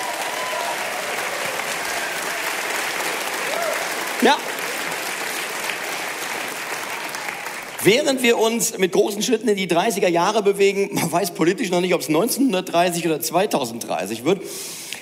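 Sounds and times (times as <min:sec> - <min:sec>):
audience applause: 0:00.0 - 0:08.2
speech: 0:04.2 - 0:04.5, 0:07.8 - 0:14.8.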